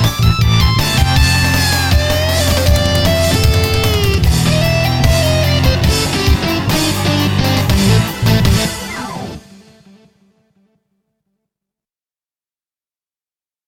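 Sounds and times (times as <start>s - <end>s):
metal guitar: 0.0s - 10.0s.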